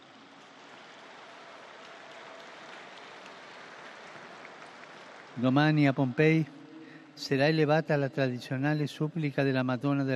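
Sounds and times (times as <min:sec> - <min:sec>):
audience applause: 0:00.0 - 0:07.7
speech: 0:05.4 - 0:06.6, 0:07.2 - 0:10.1.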